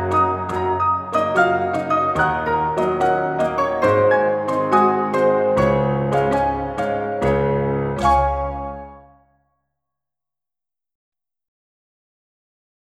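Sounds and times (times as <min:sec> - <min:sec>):
tango music: 0:00.0 - 0:09.2.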